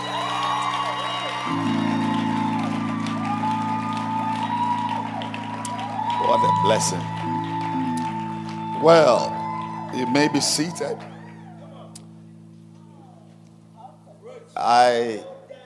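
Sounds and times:
church congregation clapping: 0.0s - 11.9s
people shouting and cheering: 0.0s - 12.0s
sustained keyboard chords: 0.0s - 15.2s
speech: 6.3s - 7.4s, 8.8s - 11.1s, 14.6s - 15.3s.

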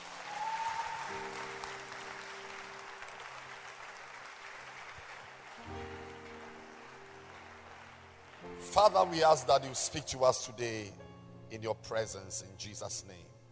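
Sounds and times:
audience applause: 0.0s - 10.0s
speech: 8.6s - 13.3s.

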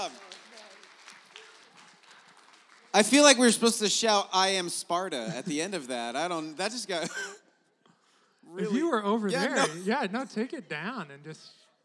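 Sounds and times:
speech: 0.0s - 0.3s, 3.0s - 7.4s, 8.5s - 11.6s
audience applause: 0.0s - 4.6s
laughter: 5.0s - 7.4s, 8.6s - 10.5s
voices calling out: 8.6s - 9.8s.

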